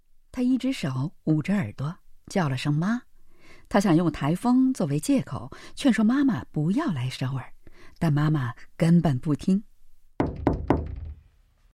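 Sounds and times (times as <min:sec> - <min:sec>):
speech: 0:00.4 - 0:09.7
knocking on a door: 0:10.2 - 0:11.3.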